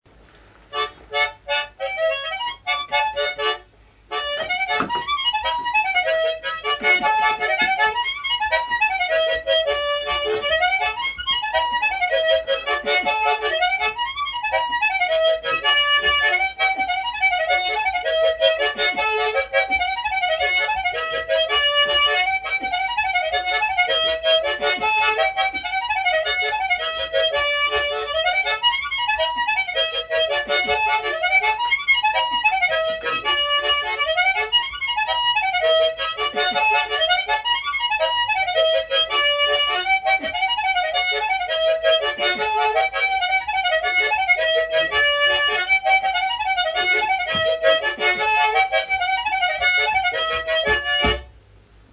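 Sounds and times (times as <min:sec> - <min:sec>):
harmonica music: 0:00.7 - 0:51.4.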